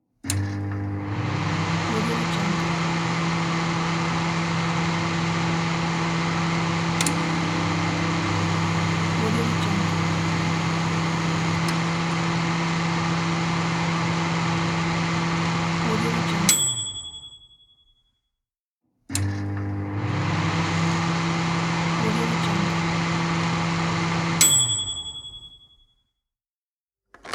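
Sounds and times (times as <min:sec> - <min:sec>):
microwave: 0:00.3 - 0:17.4, 0:19.1 - 0:25.6.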